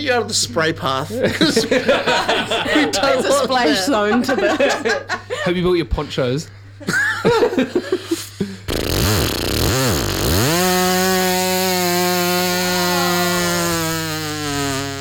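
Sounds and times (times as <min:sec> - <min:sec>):
speech: 0:00.0 - 0:08.2
laughter: 0:00.5 - 0:08.7
voice imitating a weed whacker: 0:08.7 - 0:14.9.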